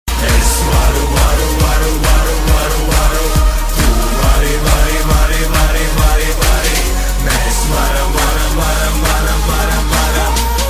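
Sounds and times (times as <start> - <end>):
win music: 0.1 - 10.6.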